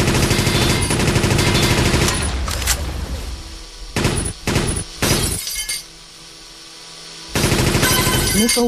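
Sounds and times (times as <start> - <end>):
machine gun fire: 0.0 - 2.8, 4.0 - 5.3, 7.3 - 8.3.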